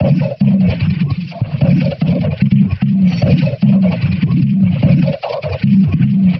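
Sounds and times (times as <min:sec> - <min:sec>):
jungle drum loop: 0:00.0 - 0:06.3.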